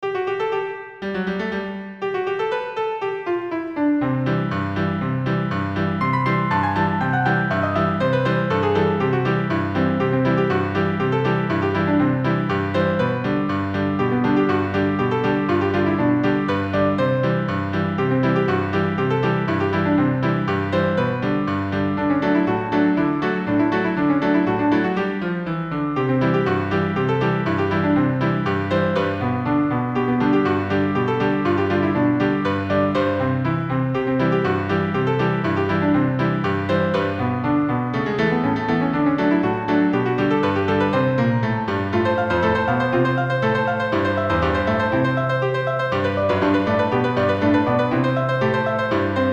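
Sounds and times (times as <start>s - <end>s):
polka on piano: 0.0s - 49.3s.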